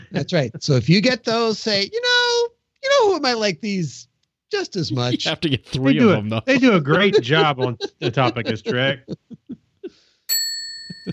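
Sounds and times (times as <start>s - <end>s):
laughter: 0.0s - 0.6s, 4.7s - 10.0s
speech: 0.1s - 2.1s, 3.0s - 9.3s
single bell struck and ringing: 10.3s - 11.1s.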